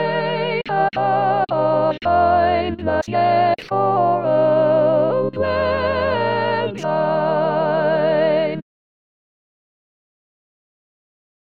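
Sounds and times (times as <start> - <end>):
soprano singing: 0.0 - 8.6.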